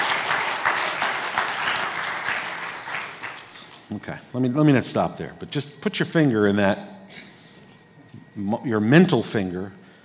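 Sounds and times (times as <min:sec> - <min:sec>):
audience clapping: 0:00.0 - 0:03.9
speech: 0:03.9 - 0:07.2, 0:08.4 - 0:09.8.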